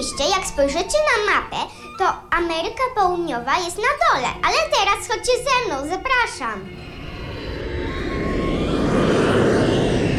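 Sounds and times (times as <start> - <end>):
speech: 0.0 - 6.9
airplane flying past: 6.6 - 10.1.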